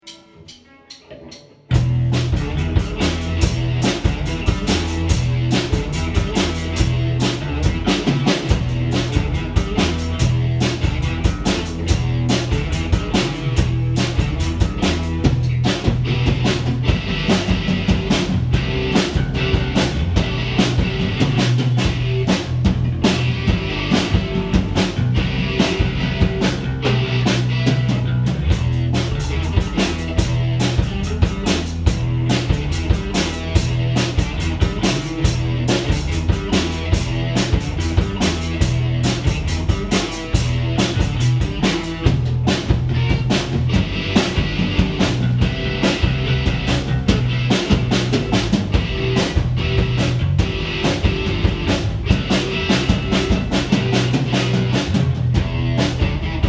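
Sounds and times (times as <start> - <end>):
rock guitar riff: 0.0 - 56.4.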